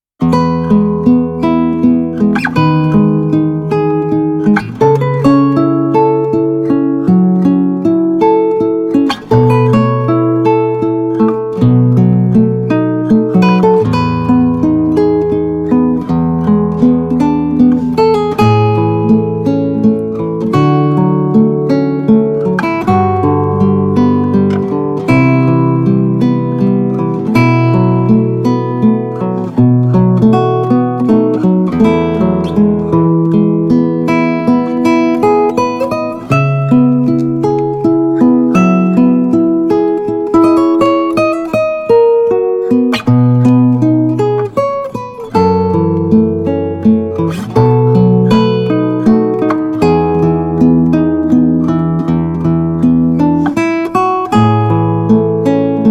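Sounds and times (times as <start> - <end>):
Spanish guitar playing: 0.2 - 55.8.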